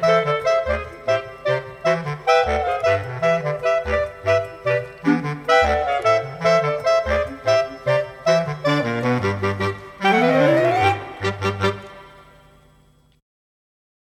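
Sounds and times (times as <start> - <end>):
clarinet quartet playing mambo: 0.0 - 12.5.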